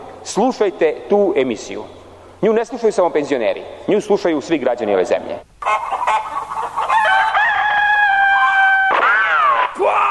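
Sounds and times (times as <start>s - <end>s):
speech: 0.2s - 5.8s
chicken squawking and crowing: 5.6s - 10.0s.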